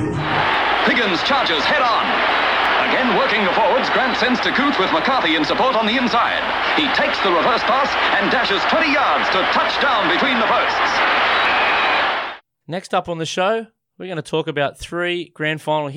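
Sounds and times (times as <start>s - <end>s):
rugby league club theme song: 0.2s - 12.4s
speech: 4.1s - 11.2s, 12.7s - 15.9s.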